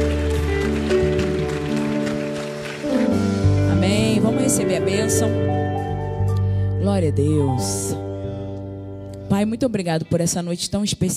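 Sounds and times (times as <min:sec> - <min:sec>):
audience applauding: 0:00.0 - 0:05.1
speech: 0:04.6 - 0:05.8, 0:06.8 - 0:08.0, 0:09.3 - 0:11.1.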